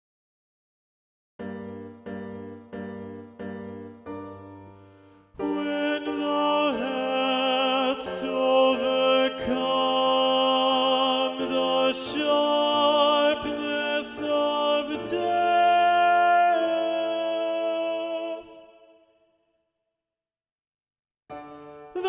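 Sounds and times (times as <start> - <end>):
tenor singing: 5.4 - 19.0, 21.8 - 22.0.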